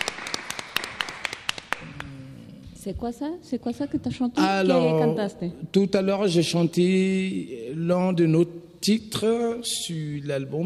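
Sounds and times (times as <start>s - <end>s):
audience applause: 0.0s - 2.0s
speech: 2.8s - 10.6s.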